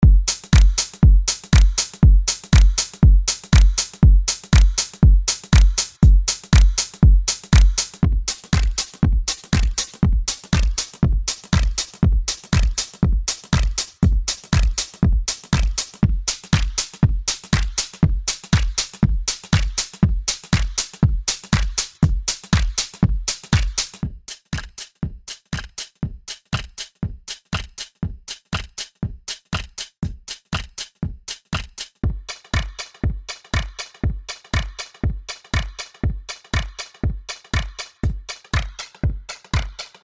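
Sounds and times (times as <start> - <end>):
drum: 0.0 - 40.0.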